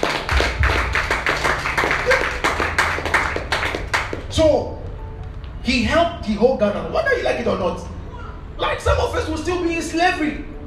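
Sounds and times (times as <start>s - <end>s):
audience clapping hands: 0.0s - 4.3s
speech: 4.4s - 4.8s, 5.6s - 7.9s, 8.6s - 10.5s.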